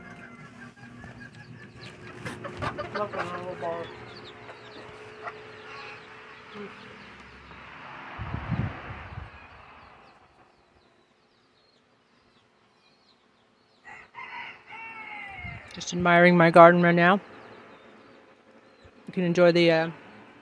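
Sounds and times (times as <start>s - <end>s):
rooster crowing: 0.0s - 1.0s, 4.0s - 7.0s, 13.8s - 15.8s
chickens clucking: 0.0s - 7.7s
speech: 3.0s - 4.1s, 6.6s - 6.9s, 15.9s - 17.3s, 19.2s - 20.0s.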